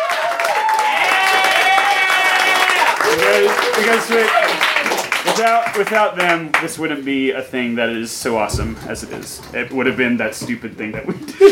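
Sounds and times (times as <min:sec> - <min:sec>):
pitched shout: 0:00.0 - 0:04.8
voices cheering and whooping: 0:00.0 - 0:04.9
crowd clapping: 0:00.0 - 0:06.8
speech: 0:03.8 - 0:04.6, 0:05.3 - 0:11.5.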